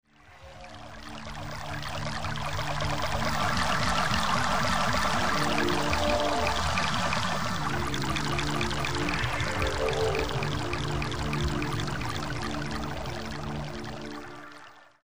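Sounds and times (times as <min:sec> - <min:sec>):
ambient music: 0:00.1 - 0:15.0.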